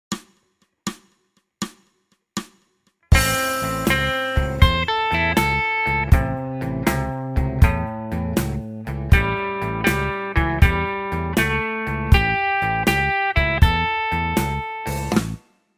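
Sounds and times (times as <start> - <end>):
blues music: 3.1 - 15.4.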